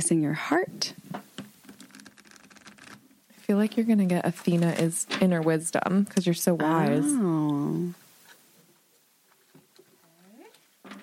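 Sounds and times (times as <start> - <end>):
speech: 0.0 - 1.0, 3.5 - 8.0
shuffling a deck of oracle cards: 1.6 - 3.0.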